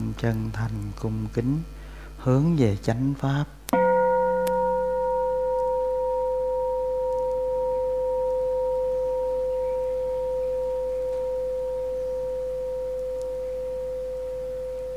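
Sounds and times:
speech: 0.2s - 3.6s
Buddhist temple bell ringing: 3.8s - 14.8s.

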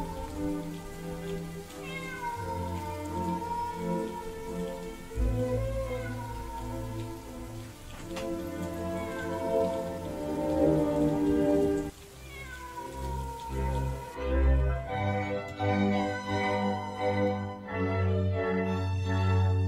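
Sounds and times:
stray cat meowing at night in the rain: 0.0s - 14.2s
rain falling: 0.0s - 19.6s.

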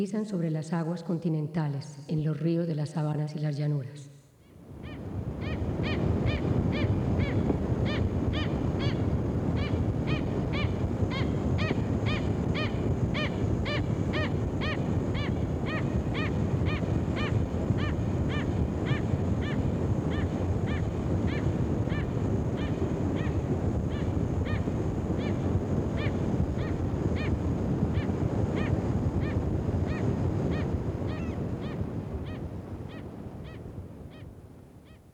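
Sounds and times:
speech: 0.0s - 4.2s
gulls calling: 4.5s - 34.3s.

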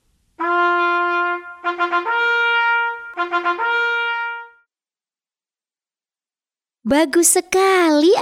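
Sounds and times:
trumpet: 0.4s - 4.7s
speech: 1.8s - 2.2s, 3.3s - 4.0s, 6.9s - 8.2s.

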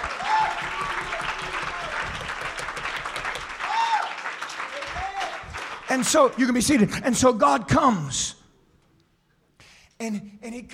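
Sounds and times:
congregation clapping hands during a church service: 0.0s - 7.4s
speech: 5.9s - 8.4s, 10.0s - 10.7s.

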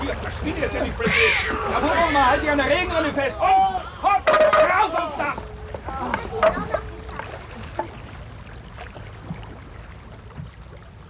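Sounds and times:
moving floodwater in a flooded town: 0.0s - 11.0s
softer continuous sloshing: 0.0s - 11.0s
speech: 0.1s - 4.2s
sharper splashes and knocks: 4.2s - 10.8s.

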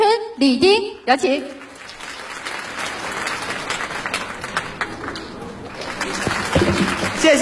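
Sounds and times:
speech: 0.4s - 1.6s, 7.3s - 7.4s
audience applause at a live stage show in Beijing: 1.6s - 7.4s.

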